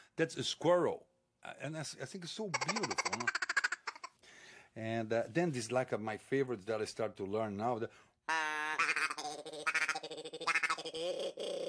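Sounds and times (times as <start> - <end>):
speech: 0.2 - 3.5, 4.8 - 8.4
duck call being blown: 8.4 - 10.8.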